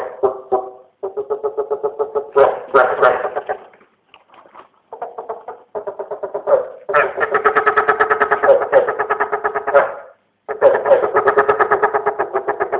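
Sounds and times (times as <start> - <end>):
East Asian bullfrogs calling in dense pulsed bursts: 0.2 - 2.4, 4.9 - 12.7.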